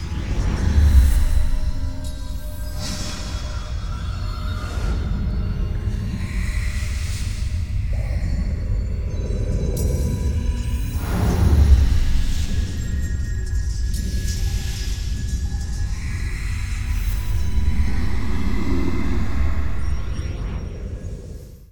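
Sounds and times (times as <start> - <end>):
ambience: 0.0 - 21.6.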